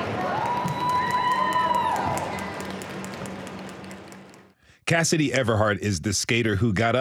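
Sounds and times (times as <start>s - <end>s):
crowd applauding as injured skater stands up: 0.2s - 4.6s
speech: 4.9s - 7.0s.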